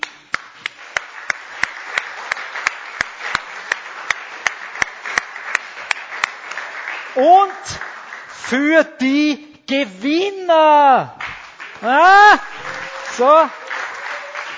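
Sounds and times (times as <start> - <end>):
audience applause: 0.3 - 8.6, 11.2 - 14.5
speech: 7.2 - 11.2, 11.8 - 12.6, 13.2 - 13.6.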